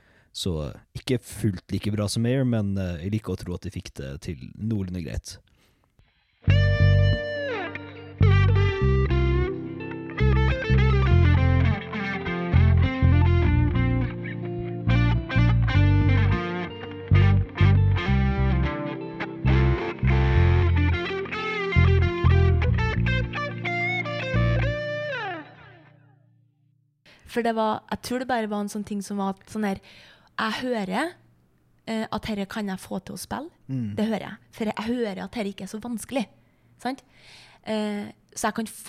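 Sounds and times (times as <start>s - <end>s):
speech: 0.4s - 5.5s, 27.4s - 31.2s, 31.9s - 38.8s
guitar solo: 6.4s - 26.2s.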